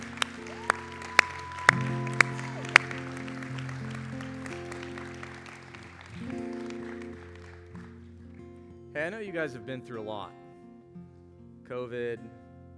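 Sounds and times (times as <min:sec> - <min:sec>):
audience clapping: 0:00.0 - 0:08.4
speech: 0:09.0 - 0:10.4, 0:11.7 - 0:12.4.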